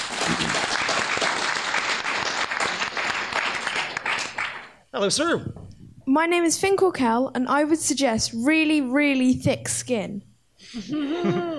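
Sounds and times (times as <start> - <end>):
audience applause: 0.0 - 4.8
speech: 5.0 - 11.5.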